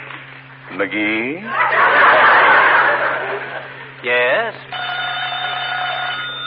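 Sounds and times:
speech: 0.8 - 1.7
laughter: 1.4 - 4.0
telephone bell ringing: 4.7 - 6.4.

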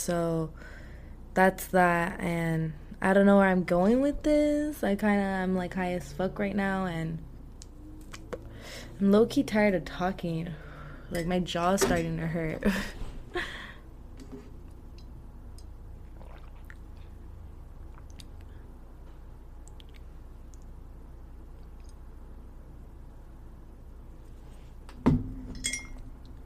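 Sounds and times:
speech: 0.0 - 0.8, 1.4 - 7.3, 8.7 - 13.5
person drinking water: 15.6 - 18.7.

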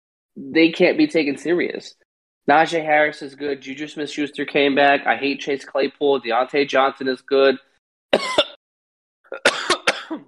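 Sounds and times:
speech: 0.4 - 8.4
person coughing after choking on saliva: 8.2 - 8.6, 9.3 - 10.2.

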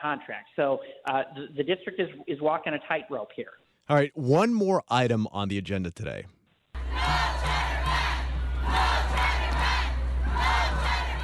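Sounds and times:
speech: 0.0 - 6.4
group shouting a protest chant: 6.8 - 11.2.

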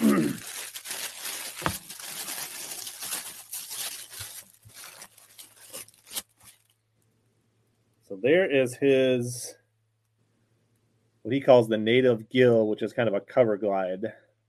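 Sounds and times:
tissue paper from a package holding a shirt and fishing lures crinkling: 0.0 - 6.7
speech: 8.2 - 9.6, 11.3 - 14.2.

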